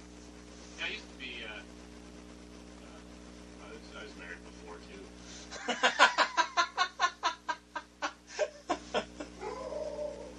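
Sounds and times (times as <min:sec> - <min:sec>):
laughter: 0:05.5 - 0:09.3
dog whining: 0:09.4 - 0:10.3.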